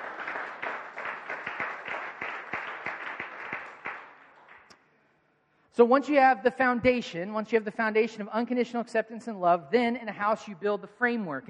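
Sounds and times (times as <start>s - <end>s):
audience applause: 0.0s - 4.6s
speech: 5.8s - 11.4s.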